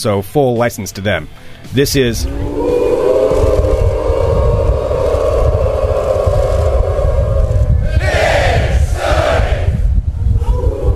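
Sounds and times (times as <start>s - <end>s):
speech: 0.0s - 2.5s
thick roaring crowd rumble: 2.0s - 10.9s
huge crowd chanting a team cheer: 2.2s - 9.8s.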